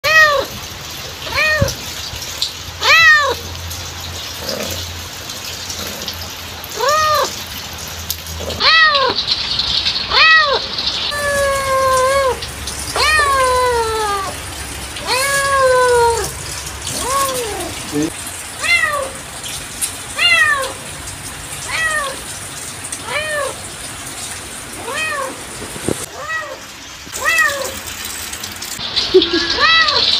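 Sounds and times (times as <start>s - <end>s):
real cat meowing: 0.0s - 0.6s, 1.2s - 1.8s, 2.8s - 3.5s, 6.8s - 7.4s, 8.4s - 9.2s, 10.1s - 14.4s, 15.0s - 19.2s, 20.2s - 20.8s, 21.6s - 22.2s, 23.0s - 23.6s, 24.8s - 25.4s, 26.0s - 26.6s, 27.2s - 27.8s, 29.4s - 30.1s.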